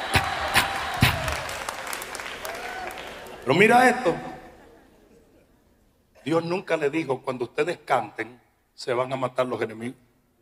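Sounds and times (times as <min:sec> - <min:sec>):
audience clapping: 0:00.0 - 0:03.9
speech: 0:03.4 - 0:04.3, 0:06.3 - 0:10.0.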